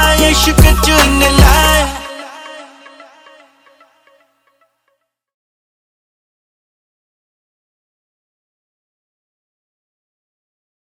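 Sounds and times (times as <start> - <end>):
Punjabi songs: 0.0 - 4.4.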